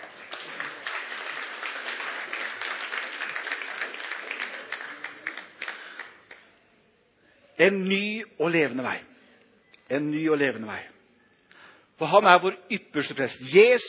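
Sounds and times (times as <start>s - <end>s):
audience applause: 0.0s - 6.4s
speech: 7.6s - 9.1s, 9.9s - 11.0s, 12.0s - 13.8s.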